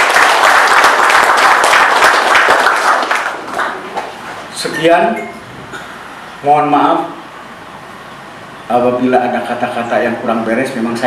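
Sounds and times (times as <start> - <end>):
audience applause at an Indonesian gathering: 0.0 - 4.2
speech: 4.8 - 5.4, 6.4 - 7.1, 8.7 - 11.0.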